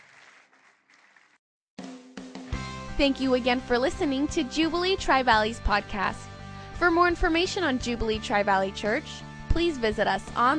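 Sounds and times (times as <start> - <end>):
audience clapping hands: 0.0 - 1.4
speech: 3.0 - 10.5.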